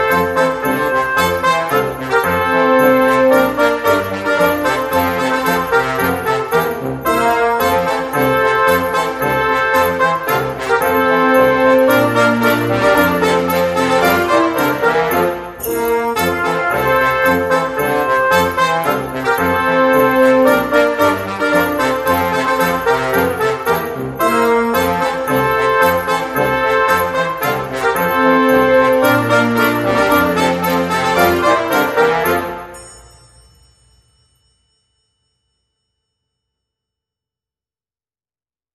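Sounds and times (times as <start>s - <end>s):
brassy instrumental music: 0.0s - 33.0s.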